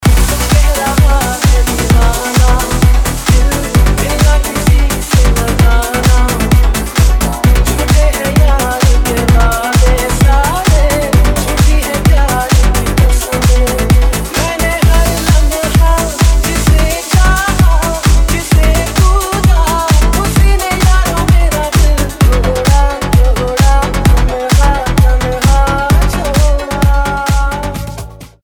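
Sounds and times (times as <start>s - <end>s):
remix music: 0.0s - 28.4s.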